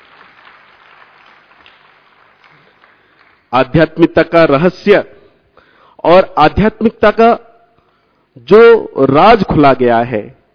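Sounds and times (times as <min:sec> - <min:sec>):
audience applause: 0:00.0 - 0:03.5
speech: 0:03.5 - 0:05.2, 0:06.0 - 0:07.5, 0:08.4 - 0:10.4.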